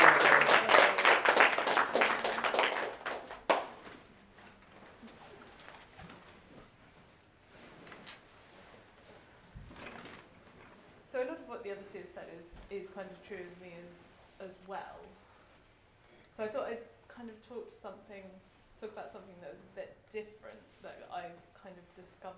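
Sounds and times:
audience clapping: 0.0s - 4.0s
speech: 12.2s - 15.2s, 16.4s - 22.3s.

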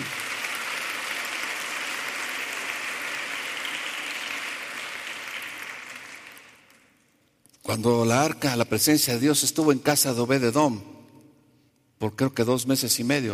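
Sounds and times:
audience applauding: 0.0s - 6.8s
speech: 7.7s - 11.0s, 12.0s - 13.3s.

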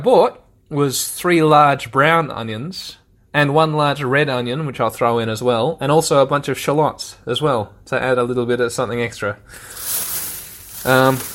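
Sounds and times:
speech: 0.0s - 10.1s, 10.8s - 11.3s
plastic bag rustling: 9.6s - 11.3s.

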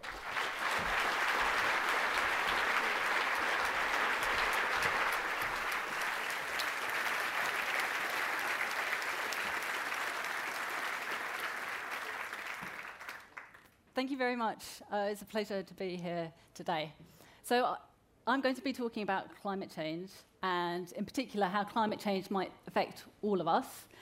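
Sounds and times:
audience applause welcoming a speaker to a Hay lecture: 0.0s - 13.7s
speech: 14.0s - 24.0s.

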